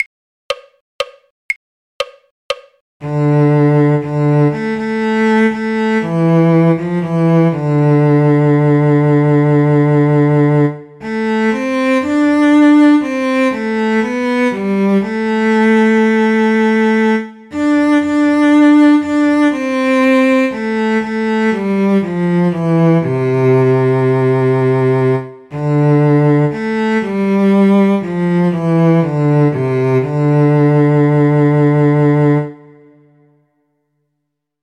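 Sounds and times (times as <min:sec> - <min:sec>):
cello: 0:03.0 - 0:33.3.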